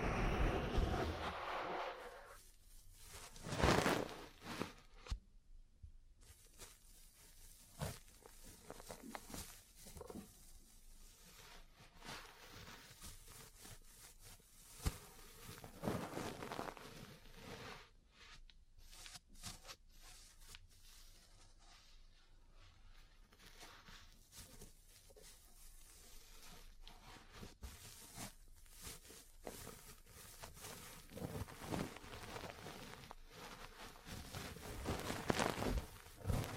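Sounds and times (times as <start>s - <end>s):
ear cleaning and massage rubbing: 0.1s - 4.8s, 6.5s - 17.8s, 23.4s - 36.5s.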